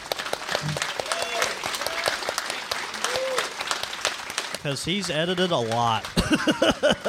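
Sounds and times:
live audience clapping: 0:00.0 - 0:07.0
whoops and cheers: 0:00.9 - 0:02.2, 0:02.9 - 0:03.6
speech: 0:04.6 - 0:07.0
laughter: 0:06.1 - 0:07.0.

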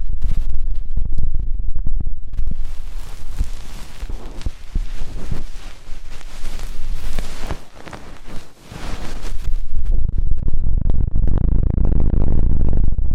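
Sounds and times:
rumbling and thumping: 0:00.0 - 0:13.1
deep ear cleaning scraping and rustling: 0:02.4 - 0:09.7.

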